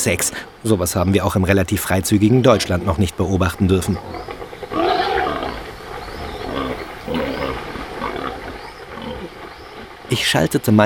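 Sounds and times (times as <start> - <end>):
speech: 0.0 - 4.4, 10.1 - 10.8
wild boars squealing while mating in mud: 3.6 - 10.1.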